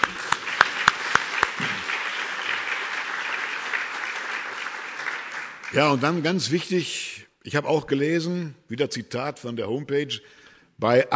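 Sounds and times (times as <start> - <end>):
audience clapping: 0.0 - 6.8
speech: 5.7 - 11.1.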